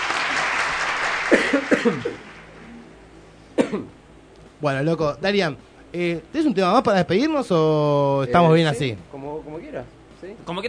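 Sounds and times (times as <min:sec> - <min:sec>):
applause: 0:00.0 - 0:02.6
speech: 0:01.3 - 0:02.3, 0:03.7 - 0:04.0, 0:04.6 - 0:10.6.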